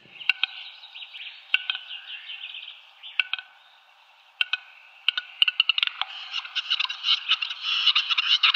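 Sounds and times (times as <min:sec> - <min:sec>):
large grouse courtship display call with clicks, pops and hissing: 0:04.2 - 0:08.5.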